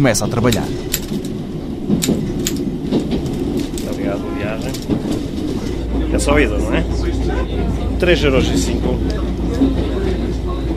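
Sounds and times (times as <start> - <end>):
speech: 0.0 - 1.3, 6.1 - 10.0
railcar rolling along the railway line: 0.0 - 10.7
sharp clacks: 0.4 - 4.0.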